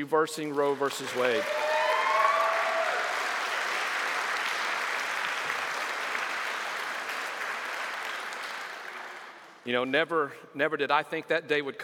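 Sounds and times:
speech: 0.0s - 1.8s, 9.6s - 11.8s
crowd applauding: 0.4s - 9.6s
high whistle or cheer: 1.4s - 3.3s.

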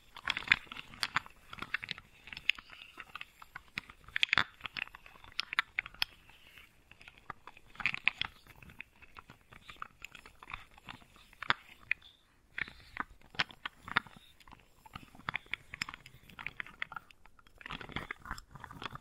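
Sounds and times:
wooden balls clicking, knocking and rolling together: 0.0s - 18.9s.

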